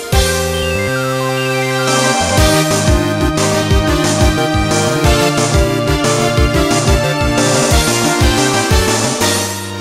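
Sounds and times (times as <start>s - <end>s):
gorgeous jingle: 0.3s - 9.7s.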